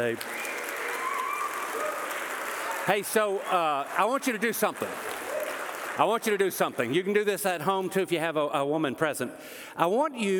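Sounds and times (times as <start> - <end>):
speech: 0.0 - 0.5, 2.9 - 5.1, 6.0 - 10.3
crowd applause: 0.0 - 7.2.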